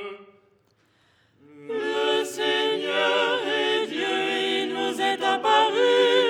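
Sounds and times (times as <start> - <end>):
soprano singing: 1.5 - 6.2.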